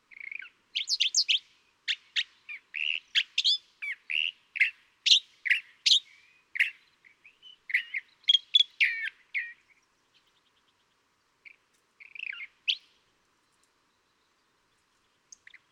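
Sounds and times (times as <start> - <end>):
California thrasher singing varied raspy and chattering phrases: 0.1 - 10.3, 11.5 - 12.8.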